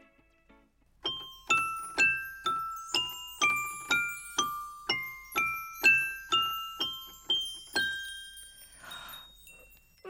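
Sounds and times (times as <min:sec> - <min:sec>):
piano being played: 0:01.0 - 0:10.0.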